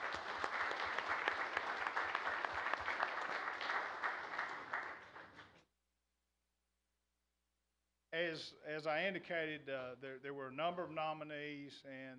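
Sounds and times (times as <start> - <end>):
audience applause: 0.0 - 5.6
speech: 8.3 - 12.1.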